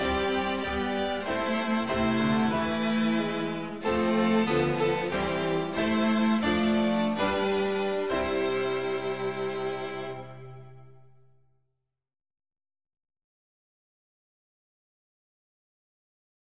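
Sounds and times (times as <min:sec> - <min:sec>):
instrumental music: 0:00.0 - 0:11.4.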